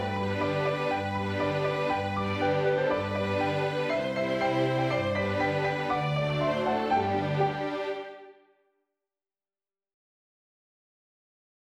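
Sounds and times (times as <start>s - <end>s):
Christmas song: 0.0s - 8.3s.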